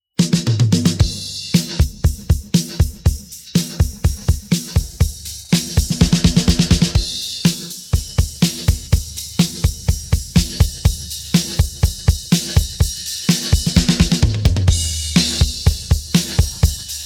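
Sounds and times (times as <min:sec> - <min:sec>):
drum pattern: 0:00.2 - 0:17.0.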